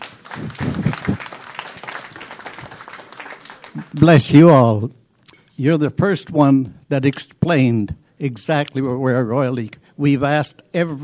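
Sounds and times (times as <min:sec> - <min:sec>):
audience applause: 0:00.0 - 0:04.3
speech: 0:04.0 - 0:05.0, 0:05.6 - 0:11.0.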